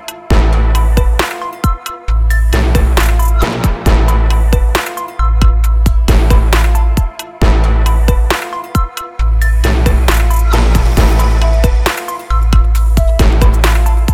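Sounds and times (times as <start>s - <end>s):
trap beat: 0.0s - 14.1s.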